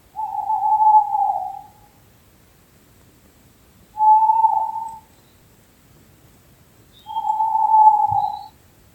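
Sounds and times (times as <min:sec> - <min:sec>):
owl hooting: 0:00.1 - 0:02.0, 0:03.9 - 0:05.3, 0:06.9 - 0:08.6.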